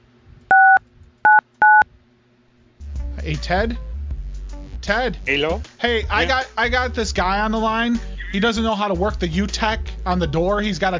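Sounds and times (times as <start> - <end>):
touch-tone keypad beeps: 0.5 - 1.8
speech: 3.2 - 3.9, 4.9 - 10.9.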